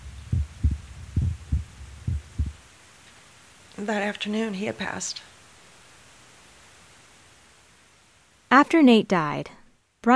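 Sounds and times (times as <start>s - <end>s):
human heartbeat: 0.0s - 2.6s
faint hum: 0.0s - 10.1s
speech: 3.8s - 5.3s, 8.5s - 10.1s.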